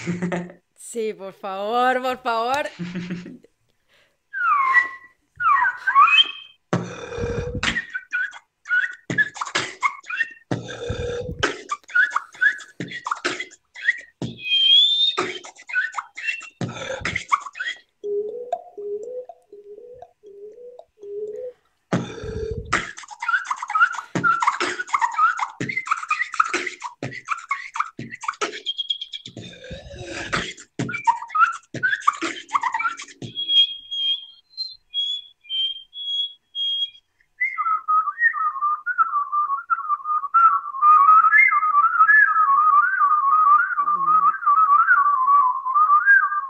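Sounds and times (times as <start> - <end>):
speech: 0.0 - 3.5
laughter: 2.7 - 3.5
solo vocal beatbox chirpy whistles: 4.3 - 46.4.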